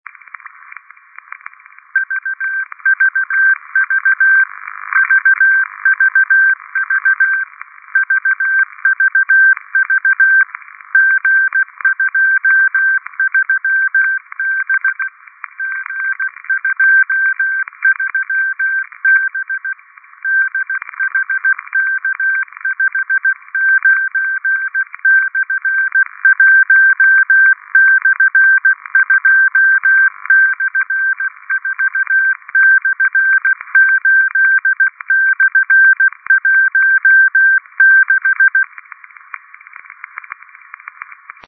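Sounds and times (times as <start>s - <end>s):
CW Morse code beeps: 2.0s - 38.7s.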